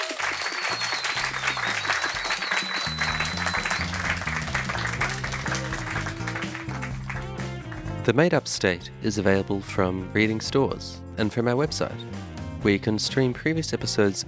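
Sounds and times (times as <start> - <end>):
applause: 0.0 - 8.0
speech: 8.0 - 14.2.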